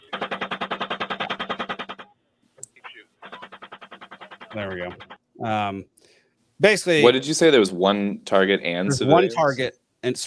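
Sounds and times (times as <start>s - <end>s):
military gunfire from a gun-camera recording: 0.0s - 2.1s, 3.2s - 5.2s
speech: 4.5s - 10.2s.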